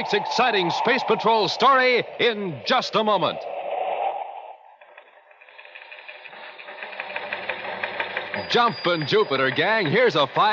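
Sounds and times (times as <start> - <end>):
speech: 0.0 - 3.6, 8.5 - 10.5
teletype machine clattering: 4.9 - 10.5.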